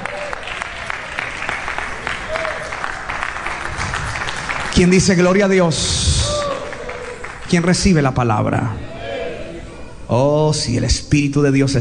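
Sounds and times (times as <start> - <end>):
audience applause: 0.0 - 7.9
speech: 4.8 - 6.2, 7.5 - 8.9, 10.1 - 11.7.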